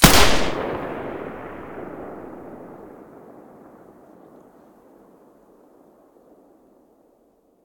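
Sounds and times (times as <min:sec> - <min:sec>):
G36 rifle with silencer shots: 0:00.0 - 0:02.8.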